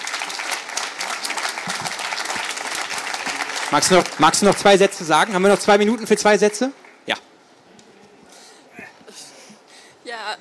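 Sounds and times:
audience applause: 0.0s - 7.0s
speech: 3.7s - 7.3s.

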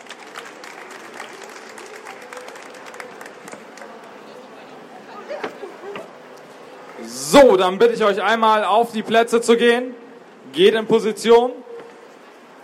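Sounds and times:
audience applause: 0.0s - 4.2s
speech: 7.3s - 10.0s, 10.6s - 11.6s.

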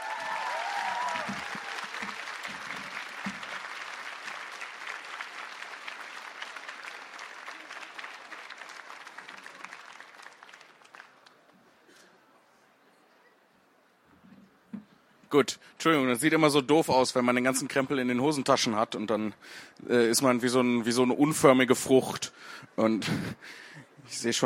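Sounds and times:
audience applause: 0.0s - 11.5s
speech: 15.3s - 24.4s.

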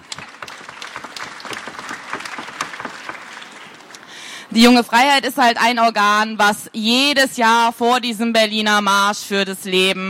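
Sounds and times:
audience clapping: 0.0s - 4.4s
speech: 4.5s - 10.0s.

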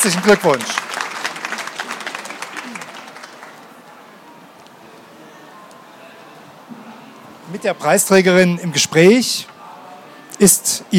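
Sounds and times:
speech: 0.0s - 1.0s, 7.6s - 9.5s, 10.4s - 10.9s
audience applause honouring the winner of the Leipzig Book Prize for European Understanding: 0.0s - 3.9s.

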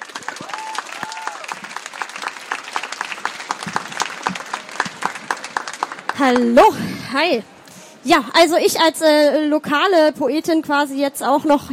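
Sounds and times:
audience applause: 0.0s - 6.6s
speech: 6.2s - 11.7s.

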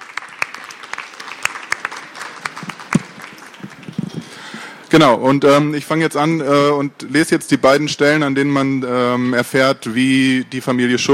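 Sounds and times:
audience applause: 0.0s - 4.5s
speech: 4.9s - 11.1s.

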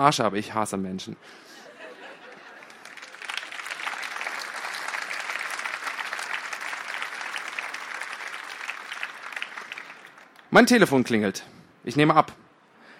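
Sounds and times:
speech: 0.0s - 1.6s, 10.5s - 12.4s
laughter: 1.5s - 3.5s
crowd of people applauding: 2.3s - 10.6s.

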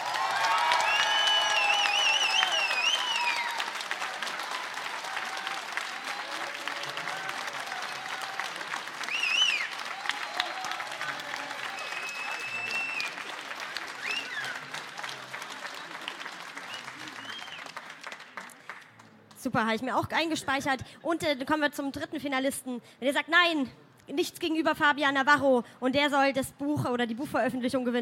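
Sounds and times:
cheers: 0.0s - 18.2s
audience applause: 0.0s - 19.4s
high whistles: 0.8s - 3.6s, 9.0s - 9.8s, 11.7s - 13.2s, 14.0s - 14.6s, 16.6s - 17.7s
speech: 19.4s - 28.0s.

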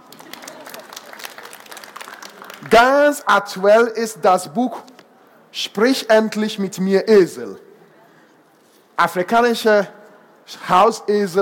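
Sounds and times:
faint audience applause: 0.0s - 2.8s
speech: 2.7s - 4.9s, 5.6s - 7.6s, 9.0s - 11.3s.

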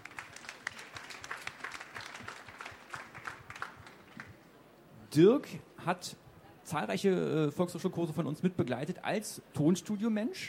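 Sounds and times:
audience applause: 0.0s - 4.3s
speech: 5.2s - 10.4s.

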